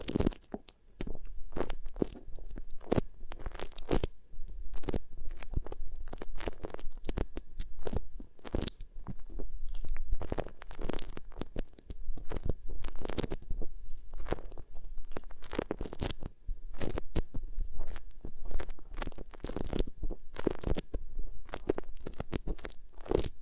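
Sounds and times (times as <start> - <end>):
beeswax ear triggers crackles and squishes: 0.0 - 23.4.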